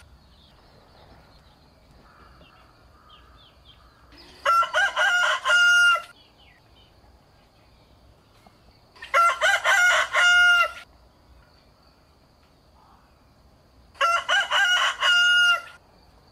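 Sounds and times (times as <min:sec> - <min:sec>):
rooster crowing: 0:04.4 - 0:06.1, 0:09.0 - 0:10.9, 0:14.0 - 0:15.8.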